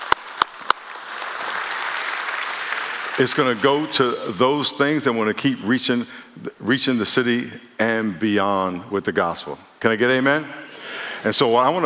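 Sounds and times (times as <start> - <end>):
audience applause: 0.0 - 4.4
speech: 3.2 - 10.6, 11.2 - 11.8.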